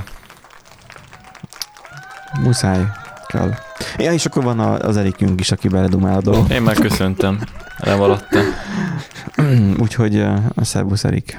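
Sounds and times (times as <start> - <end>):
applause sound effect: 0.0 - 9.6
laughter: 0.0 - 11.3
speech: 2.3 - 11.3.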